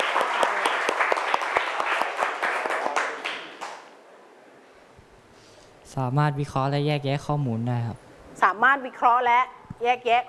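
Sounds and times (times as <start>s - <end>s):
classroom students clapping for a classmate: 0.0s - 3.9s
speech: 6.0s - 8.0s, 8.6s - 10.2s.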